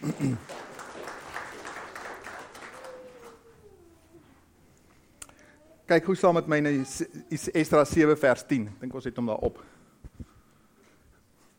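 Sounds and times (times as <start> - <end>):
applause from a church congregation: 0.0 - 3.6
speech: 0.2 - 0.6, 5.9 - 9.8.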